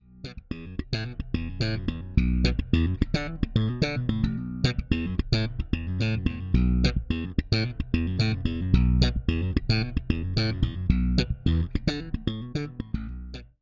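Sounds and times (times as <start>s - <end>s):
Ibanez active bass guitar with bass boost, treble boost: 0.0s - 13.6s.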